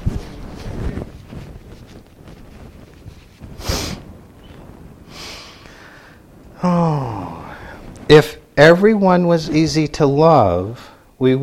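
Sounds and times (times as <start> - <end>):
person sniffing from a runny nose during allergy season: 3.6 - 4.0, 5.1 - 6.2
speech: 6.6 - 7.0, 8.1 - 11.4.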